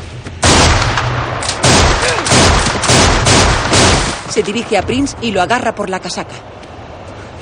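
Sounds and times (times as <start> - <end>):
gunfire as a man opens fire on a gang in a 2007 western film: 0.4 - 4.7
speech: 4.4 - 6.7.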